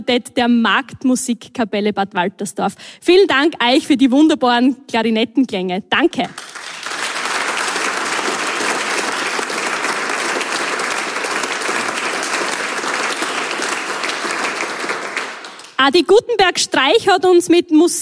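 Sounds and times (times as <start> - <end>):
speech: 0.0 - 6.6, 15.8 - 18.0
audience applause: 6.4 - 15.8.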